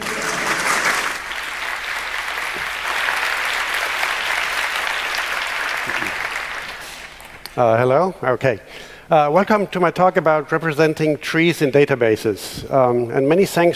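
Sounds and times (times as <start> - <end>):
audience clapping for a speaker at DjangoCon Europe: 0.0 - 7.6
speech: 7.6 - 13.7.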